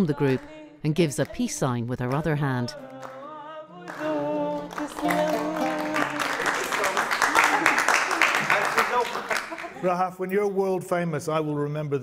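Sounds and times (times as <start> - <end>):
speech: 0.0 - 3.2, 9.8 - 12.0
listeners clapping along to a song: 0.0 - 9.8
song: 2.7 - 8.7
laughter: 4.1 - 10.2.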